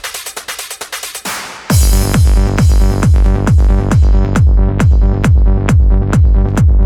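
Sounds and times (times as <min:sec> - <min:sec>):
bells instrumental music: 0:01.7 - 0:06.7.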